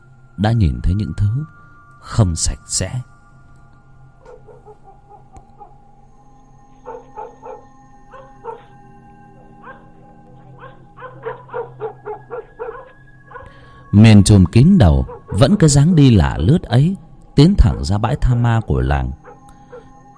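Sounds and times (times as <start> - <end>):
speech: 0.4 - 3.1, 14.0 - 19.2
village dogs barking and howling: 4.1 - 6.0, 6.7 - 13.9, 14.7 - 16.4, 19.1 - 20.1.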